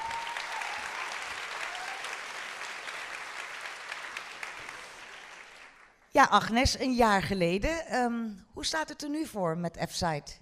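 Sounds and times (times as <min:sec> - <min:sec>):
audience applause: 0:00.0 - 0:06.0
speech: 0:06.2 - 0:10.4.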